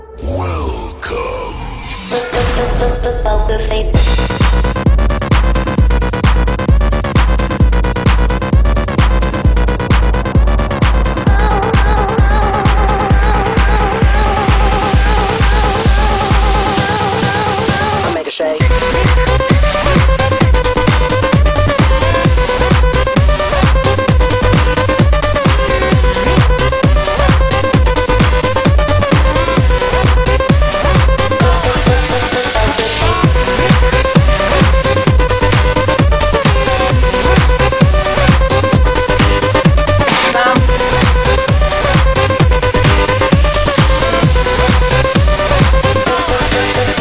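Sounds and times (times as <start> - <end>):
music: 0.0 - 46.9.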